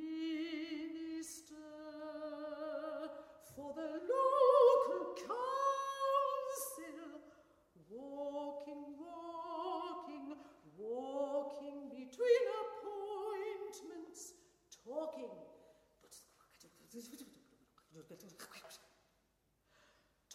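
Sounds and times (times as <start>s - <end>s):
solo soprano singing: 0.0s - 15.5s.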